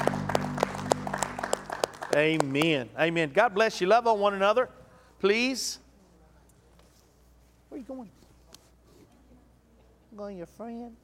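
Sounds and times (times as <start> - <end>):
audience hand clap of praise: 0.0 - 2.8
speech: 2.1 - 5.8, 7.7 - 8.2, 10.2 - 11.0.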